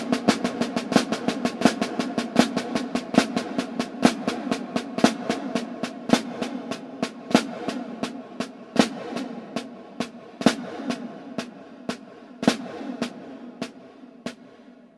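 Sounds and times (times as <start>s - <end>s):
flam paradiddle drum rudiment: 0.0s - 14.8s.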